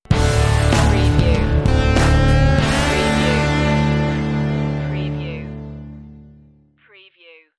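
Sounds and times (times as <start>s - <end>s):
Texas rock music stinger: 0.1s - 5.0s.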